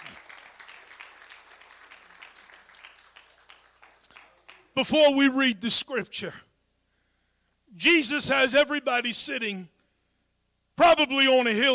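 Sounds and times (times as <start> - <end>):
audience clapping: 0.0 - 5.0
speech: 4.8 - 6.5, 7.8 - 9.8, 10.8 - 11.7.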